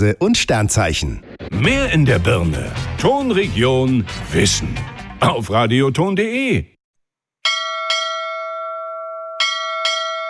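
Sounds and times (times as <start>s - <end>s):
speech: 0.0s - 6.7s
small bell ringing: 7.4s - 10.2s.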